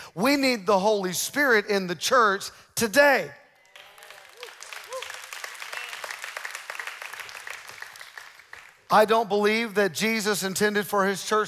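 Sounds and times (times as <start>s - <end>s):
speech: 0.2s - 3.4s, 8.9s - 11.4s
audience clapping: 3.6s - 9.1s.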